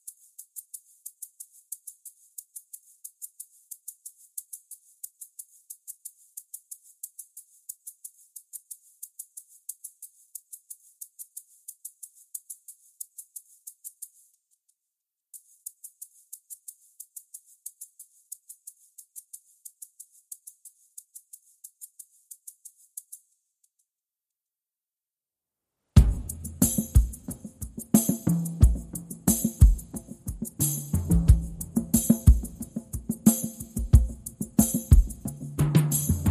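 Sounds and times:
drums: 26.0s - 36.2s.

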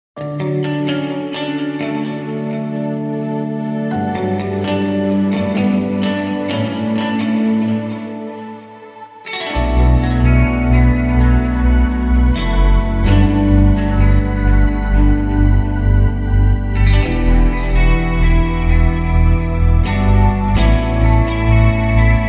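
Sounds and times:
music without drums: 0.2s - 22.2s.

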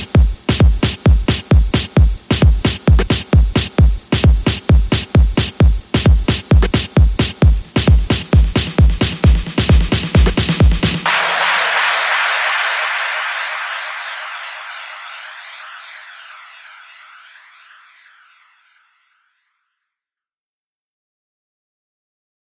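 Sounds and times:
music beat: 0.0s - 17.6s.

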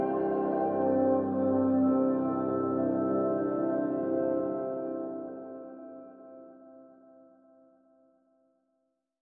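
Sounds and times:
celestial synth pad in C: 0.0s - 7.0s.

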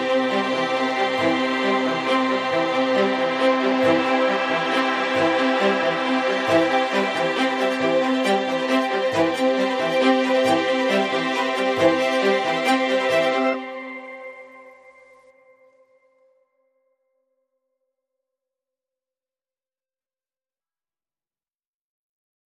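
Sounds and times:
synth pad: 0.0s - 15.6s
strings: 0.0s - 15.7s.

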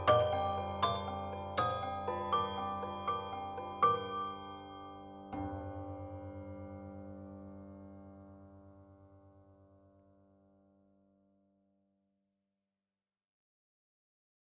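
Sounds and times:
bells: 0.0s - 7.4s.

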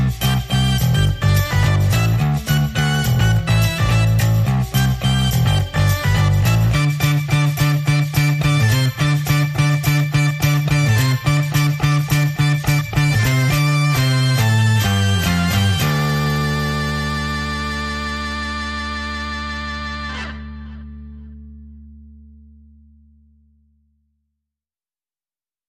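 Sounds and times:
shaker: 0.0s - 16.6s
organ lead: 0.0s - 21.5s
bass: 0.0s - 24.2s.

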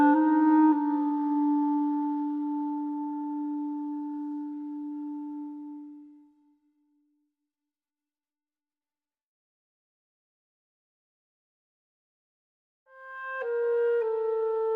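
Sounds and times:
solo clarinet: 0.0s - 6.6s, 12.9s - 14.7s.

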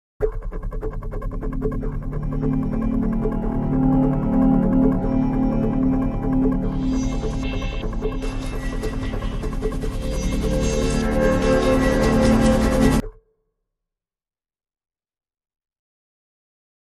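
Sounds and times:
dramatic synth sting: 0.2s - 13.2s.

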